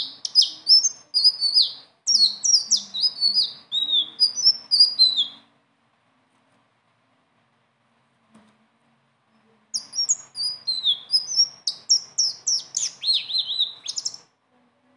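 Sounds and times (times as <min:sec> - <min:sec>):
leafbird singing: 0:00.0 - 0:05.5, 0:09.7 - 0:14.3.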